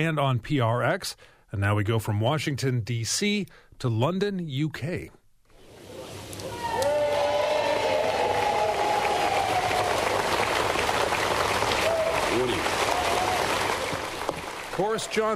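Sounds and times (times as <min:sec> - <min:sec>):
speech: 0:00.0 - 0:05.2, 0:14.8 - 0:15.3
crowd applauding outside Downing Street: 0:05.7 - 0:15.3.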